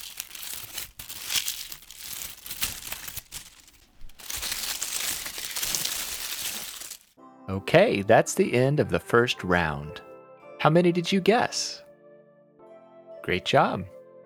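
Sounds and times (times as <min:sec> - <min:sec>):
crunching dry autumn leaves underfoot: 0:00.0 - 0:07.1
speech: 0:07.5 - 0:11.8, 0:13.3 - 0:14.0.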